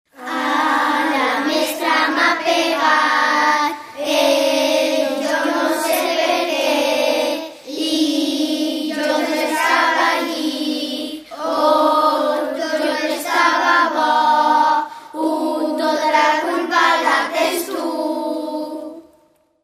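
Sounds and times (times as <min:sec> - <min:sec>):
traditional vocals: 0:00.1 - 0:19.2.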